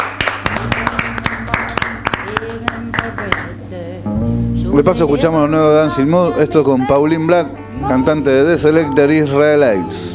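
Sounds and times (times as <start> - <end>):
applause on a radio show: 0.0 - 3.5
speech: 3.0 - 10.1.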